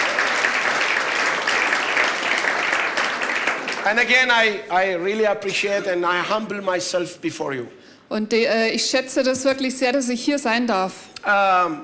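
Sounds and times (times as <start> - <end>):
audience applause: 0.0 - 4.6
speech: 3.8 - 11.8.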